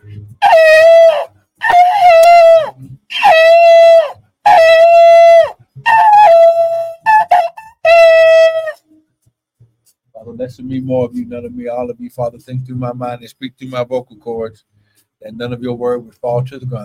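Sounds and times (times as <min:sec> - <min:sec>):
trumpet blast sounding an alarm: 0:00.4 - 0:08.8
speech: 0:10.7 - 0:14.7, 0:15.3 - 0:16.8.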